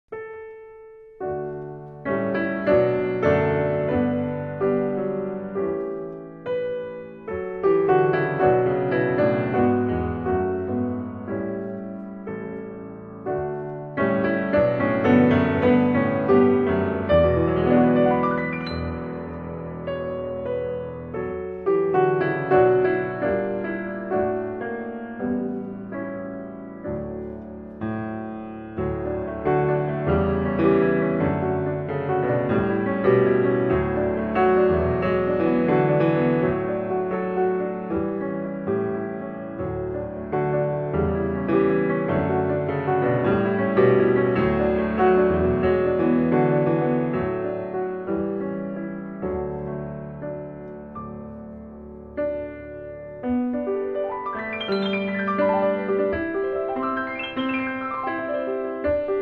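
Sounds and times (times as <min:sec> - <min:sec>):
sacred arrangements for piano: 0:00.1 - 0:59.1.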